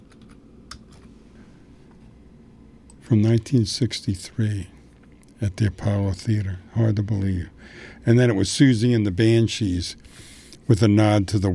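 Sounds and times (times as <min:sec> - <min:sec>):
typing on a computer keyboard: 0:00.0 - 0:00.9
low hum: 0:00.0 - 0:11.5
speech: 0:03.1 - 0:04.8, 0:05.4 - 0:11.5.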